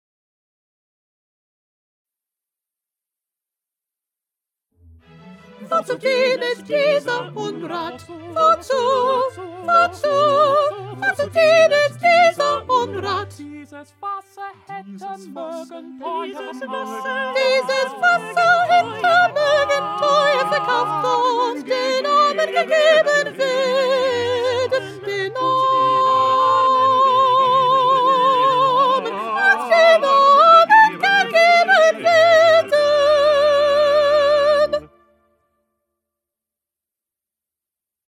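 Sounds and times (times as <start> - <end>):
soprano singing: 5.4 - 35.2.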